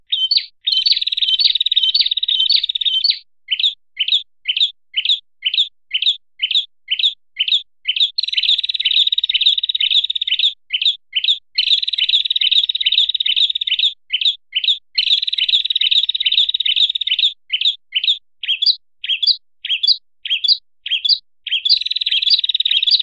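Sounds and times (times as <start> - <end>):
songbird training song of short high chirped phrases: 0.0 - 23.0.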